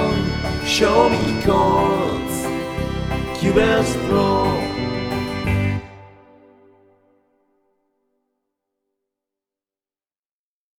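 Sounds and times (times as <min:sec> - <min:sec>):
country chords: 0:00.0 - 0:07.2.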